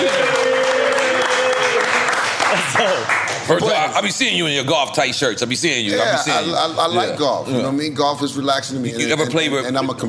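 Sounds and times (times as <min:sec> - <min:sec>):
comedy club audience applauding: 0:00.0 - 0:03.8
speech: 0:03.0 - 0:10.0.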